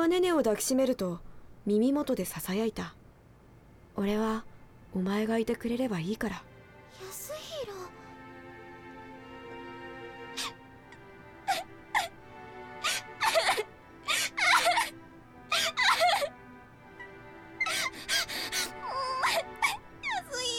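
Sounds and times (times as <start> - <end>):
speech: 0.0 - 3.0, 4.0 - 6.5
woman crying loudly in a company dormitory: 12.8 - 14.9, 15.5 - 16.3, 17.6 - 20.4.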